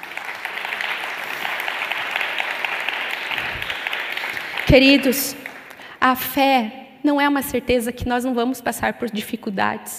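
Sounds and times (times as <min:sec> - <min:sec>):
audience applause: 0:00.0 - 0:05.8
speech: 0:04.7 - 0:05.4, 0:06.0 - 0:09.9.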